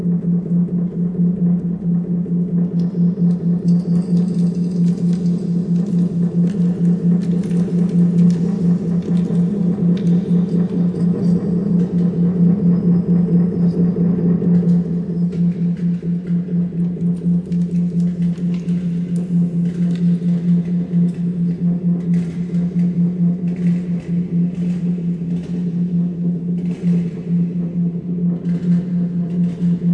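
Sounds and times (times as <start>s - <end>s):
reverberant humming space engine atmosphere: 0.0s - 29.9s.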